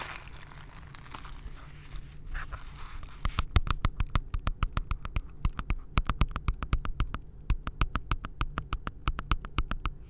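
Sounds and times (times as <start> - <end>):
soft rustling: 0.0 - 6.0
rapid ASMR tapping: 3.0 - 10.0.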